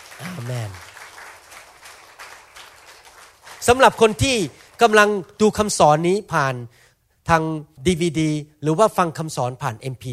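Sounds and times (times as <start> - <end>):
audience clapping: 0.0 - 5.8
speech: 0.2 - 0.9, 3.6 - 10.1.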